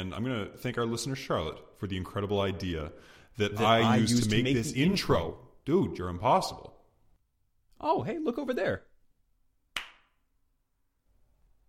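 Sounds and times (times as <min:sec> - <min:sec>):
speech: 0:00.0 - 0:06.8, 0:07.8 - 0:08.9
hand clap faking a slap: 0:09.7 - 0:10.2.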